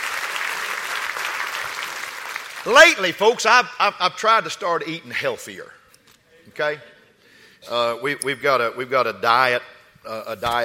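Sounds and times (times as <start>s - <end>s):
audience clapping hands: 0.0s - 3.1s
speech: 2.6s - 5.8s, 6.5s - 6.9s, 7.6s - 10.6s.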